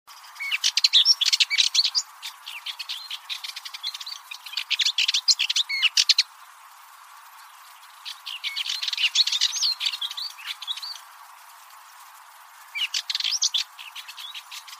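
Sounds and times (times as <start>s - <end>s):
bird chirps and twitters: 0.2s - 6.2s, 7.9s - 11.0s, 12.7s - 14.7s.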